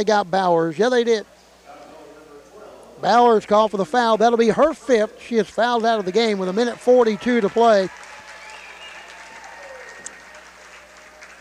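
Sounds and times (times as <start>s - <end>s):
speech: 0.0s - 1.4s, 3.0s - 8.1s
Thayer Lady Bobcat fans applauding: 5.5s - 11.3s.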